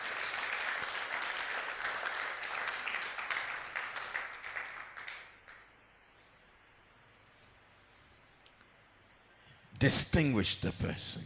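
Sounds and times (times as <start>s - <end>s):
audience clapping: 0.0s - 5.7s
speech: 9.8s - 11.2s.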